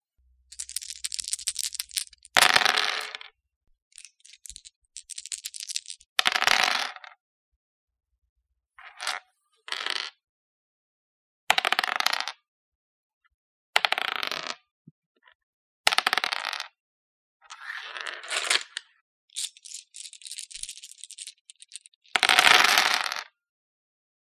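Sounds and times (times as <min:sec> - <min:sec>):
dice: 0:00.5 - 0:03.3, 0:03.9 - 0:07.2, 0:08.8 - 0:10.2, 0:11.5 - 0:12.3, 0:13.8 - 0:14.6, 0:15.9 - 0:16.7, 0:17.5 - 0:23.3.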